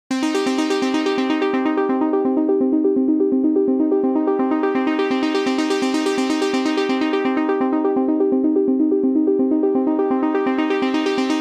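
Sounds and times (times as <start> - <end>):
sub synth with LFO modulation: 0.2 - 11.3.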